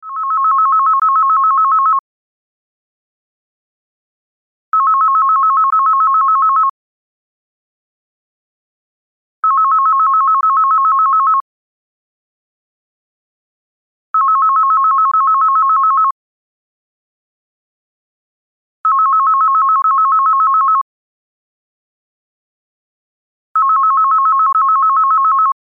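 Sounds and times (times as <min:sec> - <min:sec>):
landline phone ringtone: 0:00.0 - 0:02.0, 0:04.8 - 0:06.8, 0:09.4 - 0:11.4, 0:14.2 - 0:16.2, 0:18.8 - 0:20.9, 0:23.6 - 0:25.6.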